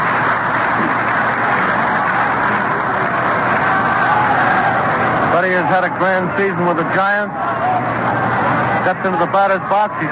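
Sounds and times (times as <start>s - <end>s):
stadium crowd applause: 0.0s - 10.1s
speech: 5.7s - 7.4s, 8.8s - 10.1s.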